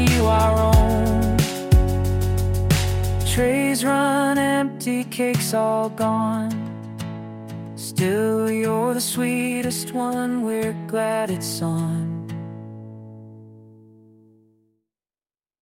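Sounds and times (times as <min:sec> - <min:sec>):
person singing birthday name songs: 0:00.0 - 0:06.7, 0:07.8 - 0:12.3.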